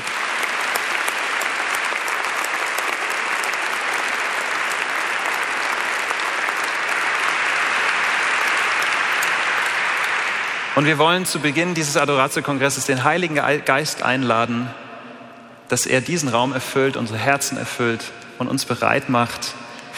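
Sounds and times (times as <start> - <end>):
audience applause for a worship band: 0.0 - 11.6
speech: 10.8 - 14.8, 15.7 - 19.9.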